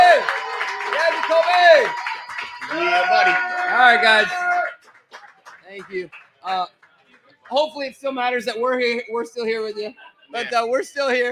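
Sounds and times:
person whooping or cheering: 0.0s - 4.7s
crowd applause: 0.0s - 7.8s
speech: 3.0s - 4.5s, 5.7s - 6.8s, 7.5s - 11.3s.

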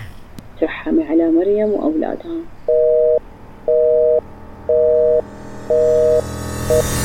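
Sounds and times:
speech: 0.6s - 2.8s
mobile phone ringing: 2.7s - 6.9s.

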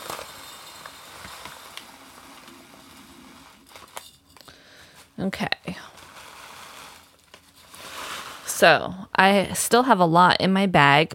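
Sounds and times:
dried echinacea root poured into a mason jar: 0.0s - 4.5s, 5.7s - 8.7s
speech: 5.2s - 5.9s, 8.6s - 11.1s.

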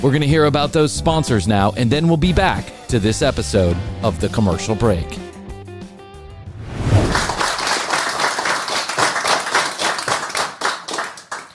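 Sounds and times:
speech: 0.0s - 5.3s
clapping: 7.1s - 11.5s.

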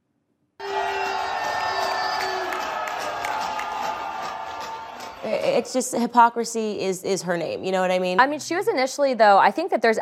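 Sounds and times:
crowd cheering at a party: 0.6s - 6.2s
speech: 5.2s - 9.9s.

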